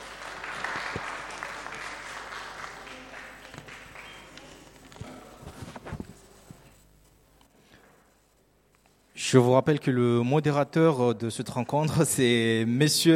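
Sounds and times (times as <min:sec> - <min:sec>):
audience applause: 0:00.0 - 0:05.4
speech: 0:09.3 - 0:13.1.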